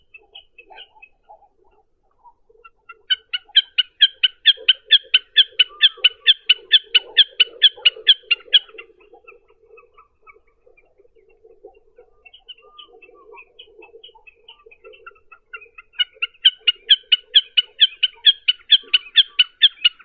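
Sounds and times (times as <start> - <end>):
common snipe Gallinago gallinago calling: 2.9 - 10.4, 12.2 - 20.0.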